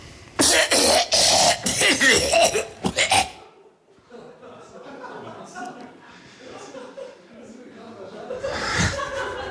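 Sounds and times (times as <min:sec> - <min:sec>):
person coughing: 0:00.4 - 0:03.5
laughter: 0:03.5 - 0:09.5.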